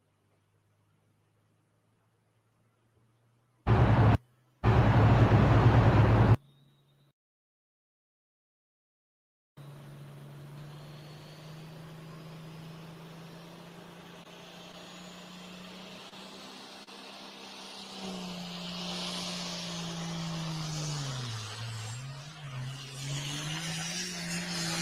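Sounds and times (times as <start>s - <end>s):
pulling tractor engine roaring: 3.7s - 6.6s, 9.6s - 24.8s.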